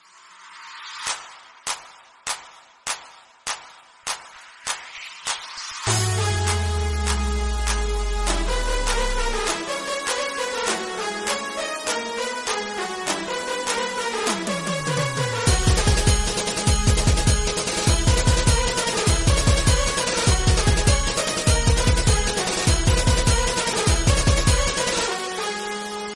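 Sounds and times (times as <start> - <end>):
background music remix ringtone: 5.9 - 26.1.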